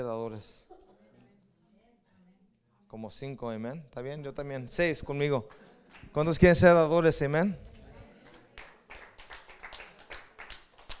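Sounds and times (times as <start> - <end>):
speech: 0.0 - 0.9, 2.9 - 7.7
weak audience applause: 5.4 - 6.8, 7.7 - 10.9.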